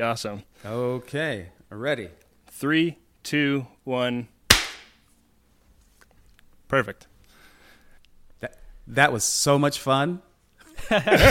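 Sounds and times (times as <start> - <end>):
speech: 0.0 - 4.3, 6.7 - 7.1, 8.4 - 11.2
single sync hand clap: 4.5 - 5.0
laughter: 10.7 - 11.2.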